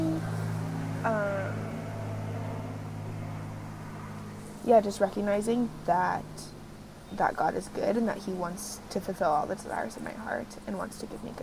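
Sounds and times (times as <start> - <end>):
loud airplane flying overhead: 0.0 - 4.6
speech: 4.7 - 6.5, 7.1 - 11.4.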